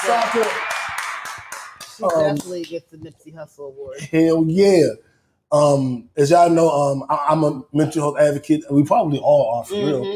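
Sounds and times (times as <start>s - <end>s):
speech: 0.0s - 0.8s, 2.0s - 10.1s
crowd clapping: 0.0s - 2.8s.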